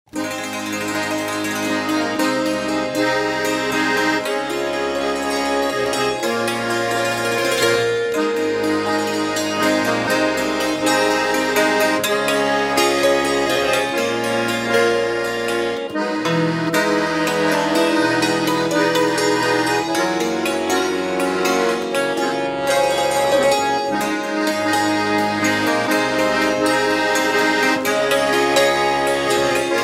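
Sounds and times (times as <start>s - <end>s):
funk music: 0.1s - 29.8s.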